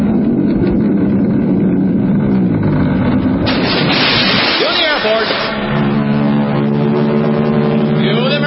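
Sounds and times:
heavy rumble of a whipped cream mountain rolling: 0:00.0 - 0:08.4
loud roaring splash into a lake: 0:03.4 - 0:07.8.

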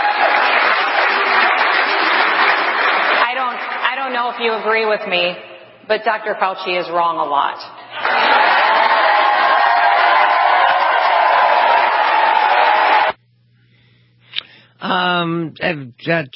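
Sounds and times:
crowd cheering and applause: 0:00.0 - 0:03.9, 0:07.9 - 0:13.2
speech: 0:04.4 - 0:07.8, 0:14.9 - 0:16.3.

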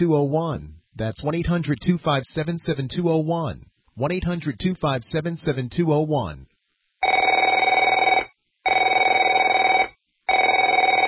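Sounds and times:
speech: 0:00.0 - 0:06.5
telephone ringing with trilling electronic bell: 0:07.0 - 0:11.0.

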